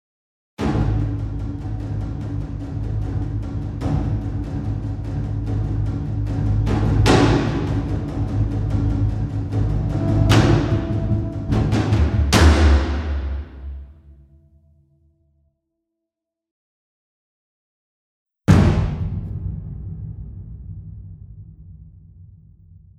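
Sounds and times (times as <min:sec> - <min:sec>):
tension stinger: 0:00.8 - 0:14.0.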